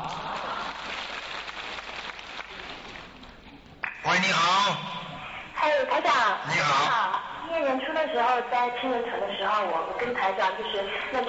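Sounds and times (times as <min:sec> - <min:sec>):
applause played from a recording: 0:00.0 - 0:04.2
speech: 0:04.2 - 0:05.0, 0:05.6 - 0:11.2.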